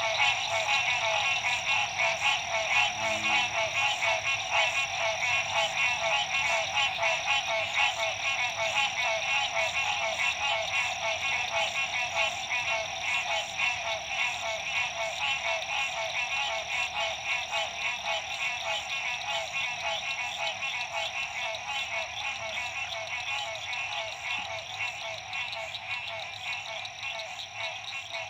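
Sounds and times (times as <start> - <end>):
frog chorus: 0.0 - 28.2.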